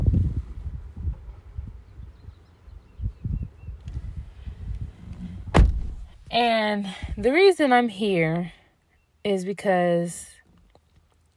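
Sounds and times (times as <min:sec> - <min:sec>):
wind rushing through an open window: 0:00.0 - 0:06.4
sharp thump: 0:05.4 - 0:06.2
speech: 0:06.3 - 0:08.6, 0:09.2 - 0:10.3.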